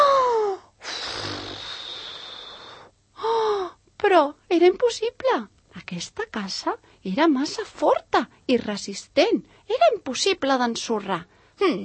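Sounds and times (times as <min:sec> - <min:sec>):
person imitating a wolf blowing very hard: 0:00.0 - 0:02.9
speech: 0:04.1 - 0:11.8.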